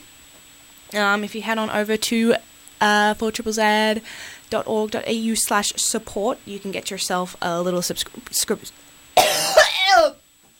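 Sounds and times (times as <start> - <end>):
speech: 0.9 - 10.2
person coughing from allergies: 9.2 - 10.2.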